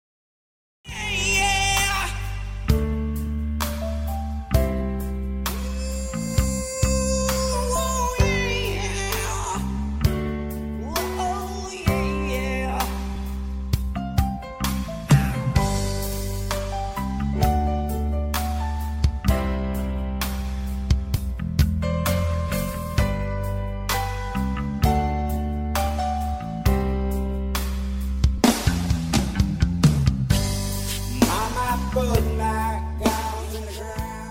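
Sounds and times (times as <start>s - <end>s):
standard tuning backing track: 0.9s - 34.2s.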